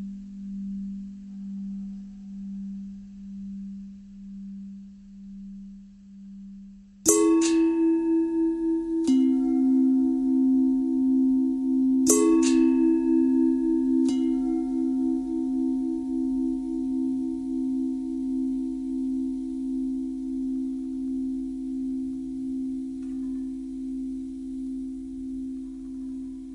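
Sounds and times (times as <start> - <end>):
long pentatonic bell tones: 7.1 - 26.5.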